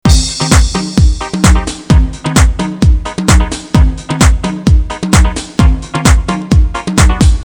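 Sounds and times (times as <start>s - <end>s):
depressing rock music: 0.0s - 7.4s.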